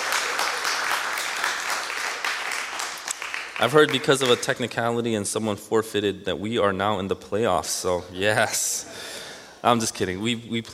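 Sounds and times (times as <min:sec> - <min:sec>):
crowd applause: 0:00.0 - 0:04.6
speech: 0:03.6 - 0:10.7.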